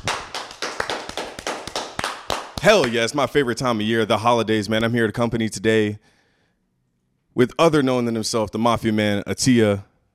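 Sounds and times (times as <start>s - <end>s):
round of applause: 0.0s - 3.0s
speech: 2.6s - 6.1s, 7.4s - 9.9s.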